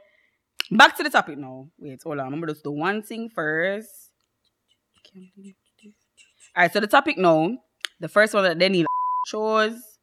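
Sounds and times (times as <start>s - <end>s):
speech: 0.7s - 4.1s, 5.1s - 9.9s
high-pitched censor beep: 8.8s - 9.4s.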